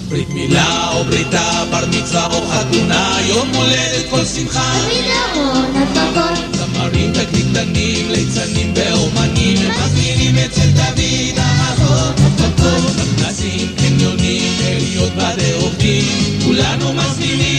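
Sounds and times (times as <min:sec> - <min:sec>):
jingle: 0:00.1 - 0:17.5.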